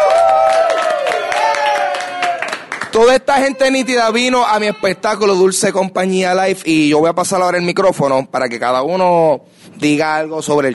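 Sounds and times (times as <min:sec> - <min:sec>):
audience applause: 0:00.0 - 0:03.6
speech: 0:03.0 - 0:10.7.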